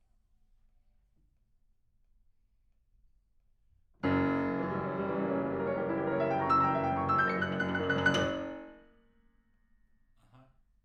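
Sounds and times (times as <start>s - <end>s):
piano: 4.0s - 9.0s.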